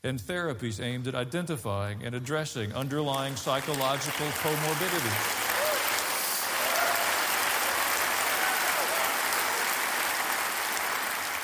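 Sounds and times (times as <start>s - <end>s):
speech: 0.0s - 5.4s
audience applause: 2.8s - 11.4s.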